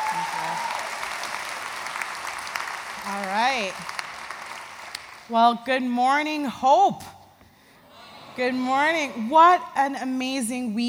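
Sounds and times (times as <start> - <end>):
audience at a church gathering applauding a speaker: 0.0 - 5.3
speech: 3.0 - 4.0, 5.3 - 7.1, 8.4 - 10.8.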